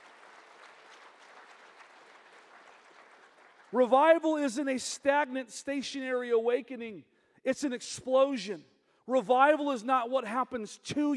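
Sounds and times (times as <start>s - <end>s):
audience applauding: 0.0s - 4.0s
speech: 3.7s - 11.1s.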